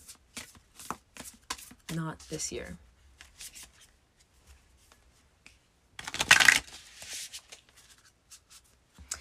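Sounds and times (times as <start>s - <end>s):
speech: 1.9s - 2.9s
oracle cards being shuffled: 6.0s - 8.1s.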